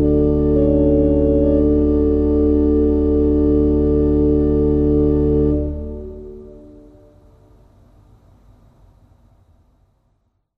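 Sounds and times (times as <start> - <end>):
pipe organ: 0.0 - 7.1.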